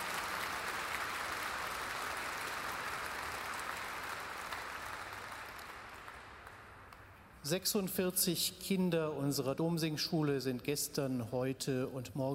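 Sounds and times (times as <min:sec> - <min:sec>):
warm audience applause: 0:00.0 - 0:06.9
speech: 0:07.4 - 0:12.3.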